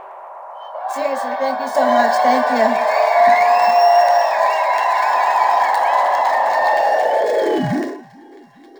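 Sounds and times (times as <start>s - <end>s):
people clapping: 0.8s - 8.7s
speech: 0.9s - 3.8s.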